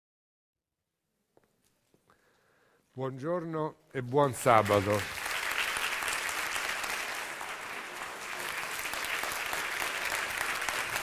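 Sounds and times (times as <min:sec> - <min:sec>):
speech: 0:03.0 - 0:05.2
encouraging applause: 0:04.3 - 0:11.0.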